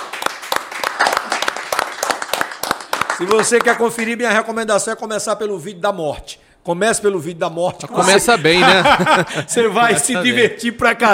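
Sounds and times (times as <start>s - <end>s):
small group applause: 0.0s - 4.4s
speech: 3.2s - 11.1s
laughter: 7.7s - 10.6s.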